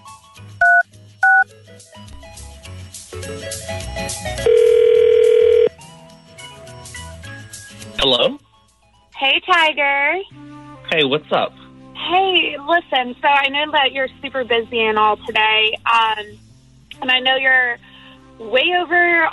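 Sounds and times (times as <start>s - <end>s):
telephone number being dialed with touch tones: 0.6s - 1.5s, 4.4s - 5.7s
speech: 9.5s - 19.3s.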